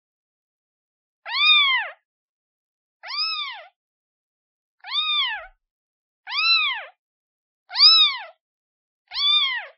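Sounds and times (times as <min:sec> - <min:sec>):
kitten meowing: 0:01.3 - 0:02.0, 0:03.0 - 0:03.8, 0:04.8 - 0:05.6, 0:06.3 - 0:07.0, 0:07.7 - 0:08.4, 0:09.1 - 0:09.7.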